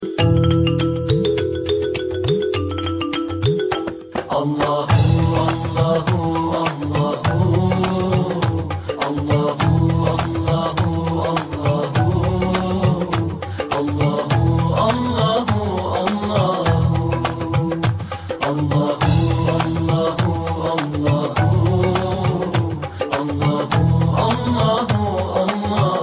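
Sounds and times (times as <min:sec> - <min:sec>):
Islamic qawwali ringtone: 0:00.0 - 0:26.0.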